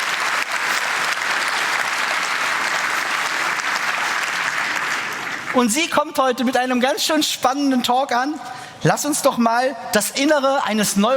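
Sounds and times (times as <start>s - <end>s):
audience applause: 0.0s - 5.6s
speech: 5.5s - 11.1s.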